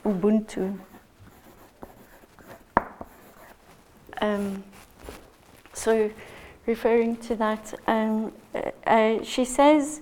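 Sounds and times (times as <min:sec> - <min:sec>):
speech: 0:00.0 - 0:00.9, 0:04.2 - 0:04.9, 0:05.8 - 0:10.0
pen scratching as a word is written by hand: 0:00.7 - 0:03.6.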